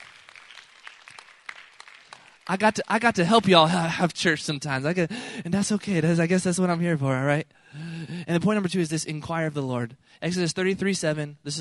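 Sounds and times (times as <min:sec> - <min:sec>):
sparse handclaps from a church congregation: 0:00.0 - 0:03.6
speech: 0:02.5 - 0:11.5.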